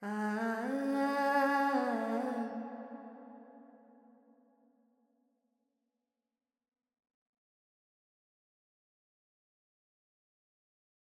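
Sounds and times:
Carnatic female vocal alap in Phrygian mode: 0:00.0 - 0:03.0.

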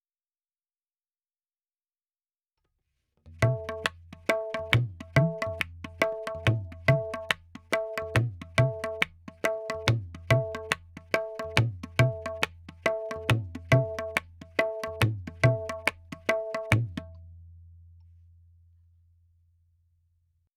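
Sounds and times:
tabla in 4/4 at 70: 0:03.3 - 0:19.4.

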